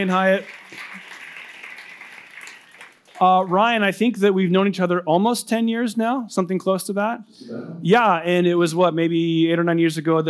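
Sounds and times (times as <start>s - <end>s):
speech: 0.0s - 0.8s, 3.2s - 10.2s
audience applause: 0.0s - 3.8s.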